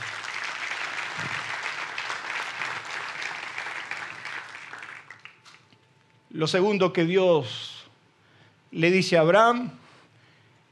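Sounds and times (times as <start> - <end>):
audience applauding loudly: 0.0 - 5.7
speech: 6.3 - 7.7, 8.7 - 9.8.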